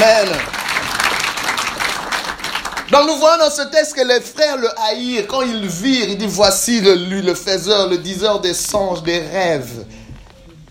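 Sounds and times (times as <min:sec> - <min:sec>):
congregation clapping and cheering during a church service: 0:00.0 - 0:04.7
speech: 0:02.9 - 0:10.0.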